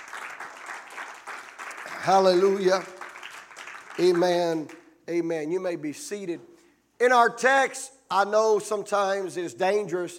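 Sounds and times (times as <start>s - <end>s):
crowd clapping hands: 0.0s - 4.9s
speech: 1.9s - 3.0s, 4.0s - 10.1s.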